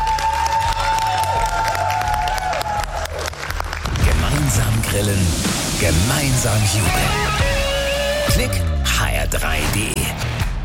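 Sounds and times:
applause from a group: 0.0s - 5.1s
speech: 5.0s - 7.5s, 8.3s - 10.3s.

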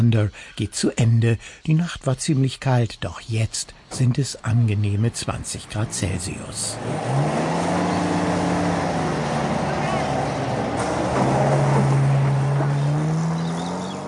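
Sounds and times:
speech: 0.0s - 8.0s
off-road vehicle roaring over dirt track: 5.0s - 14.0s.

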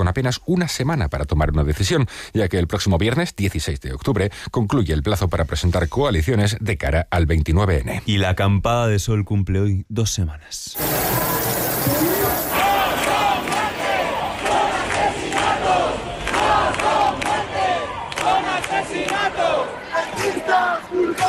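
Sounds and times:
speech: 0.0s - 12.5s
angry protest crowd chanting and shouting: 10.8s - 21.2s.

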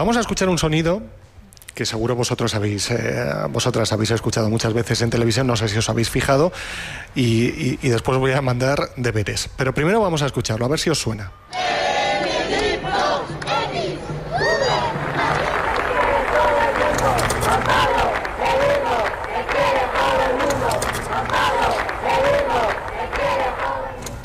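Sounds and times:
speech: 0.0s - 1.2s, 1.8s - 11.9s
crowd shouting rhythmic chants during papal visit: 11.5s - 24.2s
scattered clapping: 14.6s - 24.2s.

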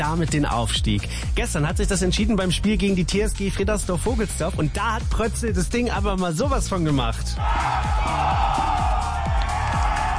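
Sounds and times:
speech: 0.0s - 8.9s
football fans cheering after title win: 7.4s - 10.1s.

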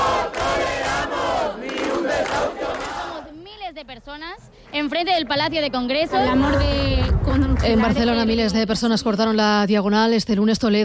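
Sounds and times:
protest crowd shouting and chanting: 0.0s - 3.4s
speech: 4.2s - 10.8s.

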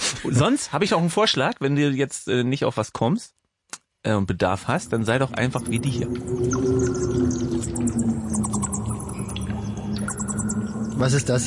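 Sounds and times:
speech: 0.2s - 3.4s, 4.0s - 8.6s, 11.0s - 11.4s
vampire bat sounds in a cave: 4.6s - 11.4s.

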